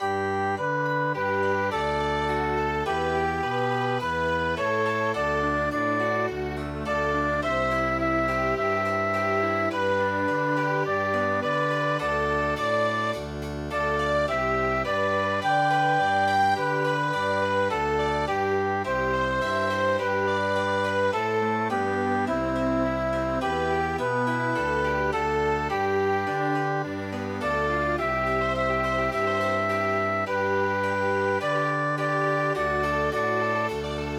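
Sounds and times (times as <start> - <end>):
chamber music: 0.0 - 34.1.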